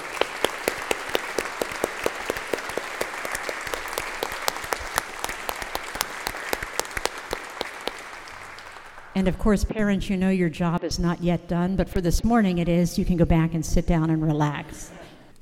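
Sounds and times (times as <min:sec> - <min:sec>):
audience applause for parents: 0:00.0 - 0:09.2
speech: 0:09.2 - 0:15.0.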